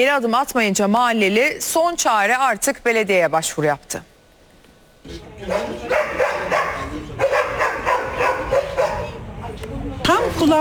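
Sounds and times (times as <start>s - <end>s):
speech: 0.0s - 4.1s, 5.0s - 6.6s, 10.1s - 10.5s
many dogs barking at a dog farm between apartment buildings in Yıldırım: 5.2s - 9.4s.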